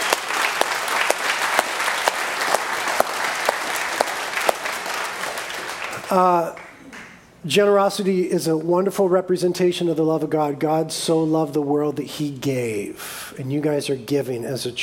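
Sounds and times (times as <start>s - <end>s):
audience applauding: 0.0s - 6.8s
speech: 6.1s - 6.6s, 7.4s - 14.8s.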